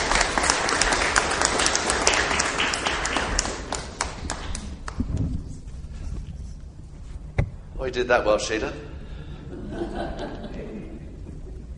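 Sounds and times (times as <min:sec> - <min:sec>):
audience applause: 0:00.0 - 0:05.1
speech: 0:07.9 - 0:08.9
laughter: 0:09.3 - 0:11.4.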